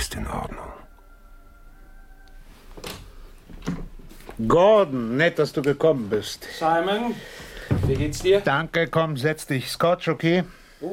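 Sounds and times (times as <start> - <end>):
speech: 0.0 - 0.6, 4.4 - 10.9
door clunk with low creak: 2.8 - 4.0, 7.7 - 8.4
door opening: 2.8 - 4.0.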